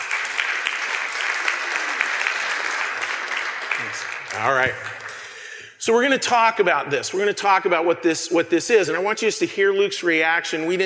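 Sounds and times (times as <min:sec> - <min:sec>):
audience applause: 0:00.0 - 0:05.5
speech: 0:03.8 - 0:05.0, 0:05.8 - 0:10.8.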